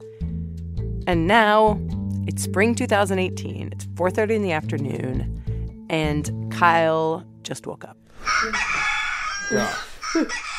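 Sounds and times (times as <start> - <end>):
speech: 1.1 - 8.8, 9.5 - 10.5
rooster crow alarm clock sound: 8.2 - 10.5.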